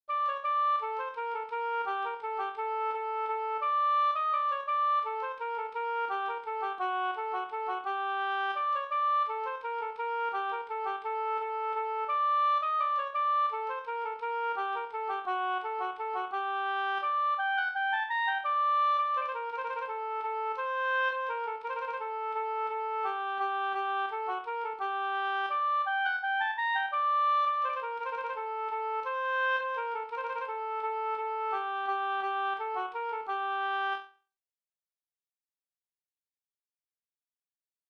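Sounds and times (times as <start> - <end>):
waltz music: 0.2 - 33.9.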